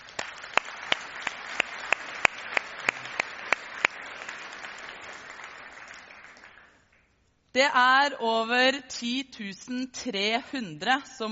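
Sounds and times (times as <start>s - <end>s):
audience applause: 0.0s - 6.8s
speech: 7.6s - 11.3s.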